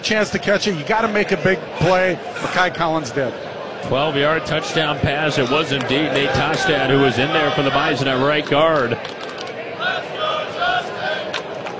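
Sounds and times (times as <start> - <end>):
speech: 0.0 - 9.2
stadium crowd chanting: 1.1 - 11.7.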